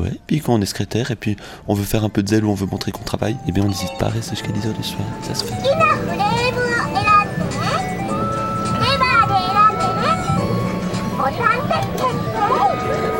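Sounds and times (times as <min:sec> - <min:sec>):
speech: 0:00.0 - 0:06.4
Tokyo street ambience: 0:03.7 - 0:13.1.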